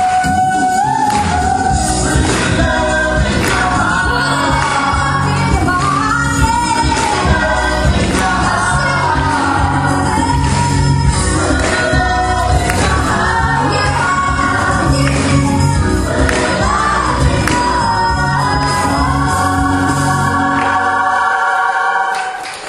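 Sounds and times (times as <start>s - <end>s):
gospel choir singing: 0.0s - 22.4s.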